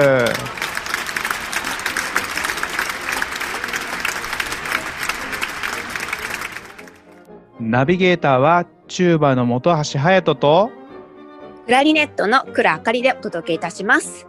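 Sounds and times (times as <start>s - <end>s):
applause from a group: 0.0s - 7.2s
speech: 7.7s - 10.8s, 11.7s - 14.2s.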